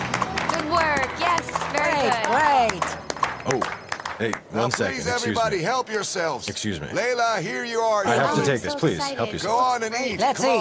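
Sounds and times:
several voices cheering and calling out: 0:00.0 - 0:05.2
guests clapping for bride and groom: 0:00.0 - 0:05.6
speech: 0:02.0 - 0:10.5.

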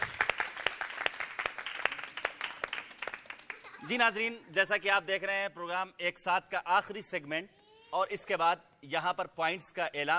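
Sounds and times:
audience applause welcoming a guest: 0:00.0 - 0:04.0
speech: 0:03.8 - 0:10.1.

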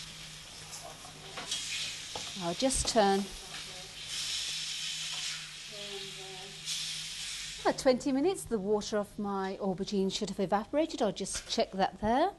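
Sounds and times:
grated tomatoes frying in a pan: 0:00.0 - 0:08.4
speech: 0:02.4 - 0:03.4, 0:07.7 - 0:12.3.

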